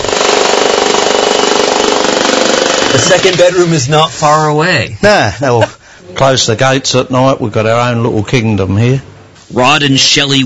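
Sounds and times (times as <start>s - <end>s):
large jackhammer digging out an underground room: 0.0s - 3.8s
speech: 3.0s - 10.4s.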